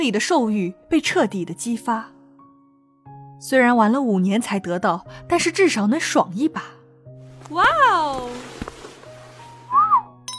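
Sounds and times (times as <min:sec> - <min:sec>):
speech: 0:00.0 - 0:02.2, 0:03.4 - 0:06.8, 0:07.5 - 0:08.5
men and women whistling in a private room: 0:09.7 - 0:10.1.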